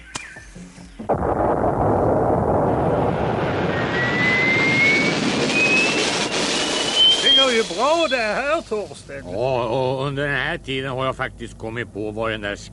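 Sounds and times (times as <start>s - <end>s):
rocket launch: 1.1s - 9.0s
speech: 7.8s - 12.7s.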